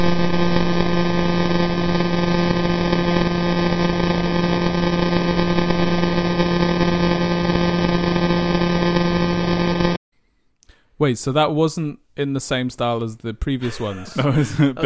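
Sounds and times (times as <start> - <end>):
radio signal from pulsar J0437 converted into a steady buzzing tone: 0.0 - 10.0
speech: 11.0 - 14.8
laughter: 13.6 - 14.8.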